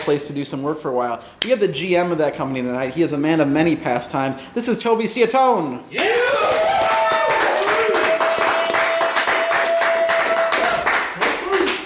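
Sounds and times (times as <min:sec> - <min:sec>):
speech: 0:00.0 - 0:06.8
audience applause: 0:06.0 - 0:11.8.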